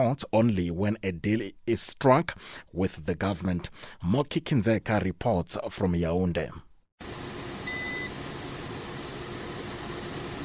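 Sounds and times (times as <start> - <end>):
speech: 0.0 - 7.2
air conditioners hissing in an empty courtroom: 7.0 - 10.4
short high electronic beep: 7.7 - 8.1.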